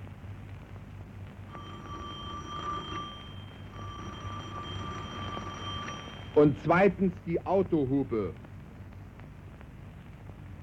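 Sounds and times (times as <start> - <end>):
ordinary electric bell ringing: 1.5 - 6.9
speech: 6.4 - 8.4.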